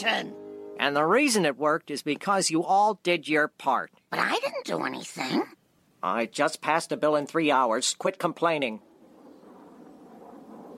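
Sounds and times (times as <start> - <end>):
speech: 0.0 - 8.9
airplanes flying overhead: 8.8 - 10.7.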